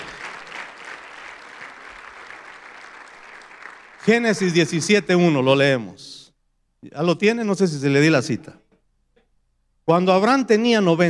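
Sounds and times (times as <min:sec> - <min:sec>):
audience clapping hands: 0:00.0 - 0:04.9
speech: 0:04.0 - 0:06.2, 0:06.8 - 0:08.6, 0:09.9 - 0:11.0.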